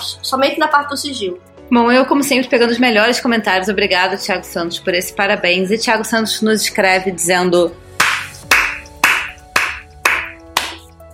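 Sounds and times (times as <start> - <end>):
speech: 0.1 - 7.8
loud hand claps: 8.0 - 11.0.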